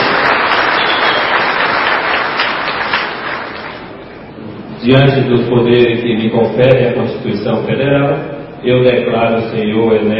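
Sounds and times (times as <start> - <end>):
crowd applause: 0.0 - 3.9
speech: 4.8 - 10.1.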